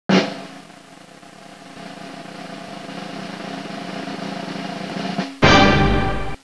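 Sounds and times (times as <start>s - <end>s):
drum roll: 0.1s - 6.4s.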